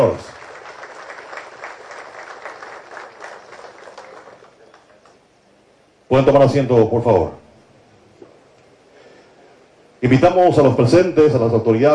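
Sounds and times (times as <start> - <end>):
speech: 0.0 - 0.3, 6.1 - 7.4, 10.0 - 11.9
audience applause: 0.0 - 5.2.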